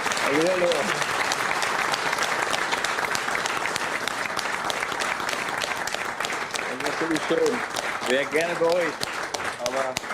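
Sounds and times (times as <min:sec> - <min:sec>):
audience applause: 0:00.0 - 0:10.1
speech: 0:00.3 - 0:01.1, 0:07.2 - 0:10.1.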